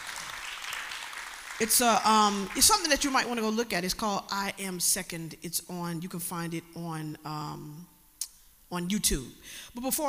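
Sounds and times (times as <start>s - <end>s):
audience applause: 0.0s - 1.7s
speech: 1.6s - 7.9s, 8.7s - 10.0s.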